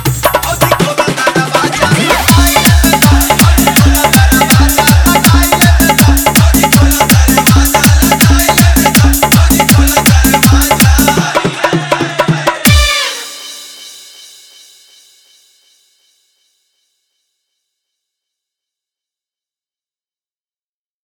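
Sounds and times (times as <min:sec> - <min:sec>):
Holi dholak bass: 0:00.0 - 0:13.8.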